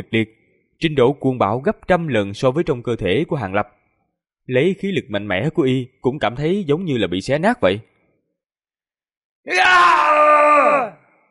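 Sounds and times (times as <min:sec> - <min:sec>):
speech: 0:00.0 - 0:03.8, 0:04.5 - 0:07.9, 0:09.4 - 0:10.1
man groaning in pain: 0:09.5 - 0:11.0.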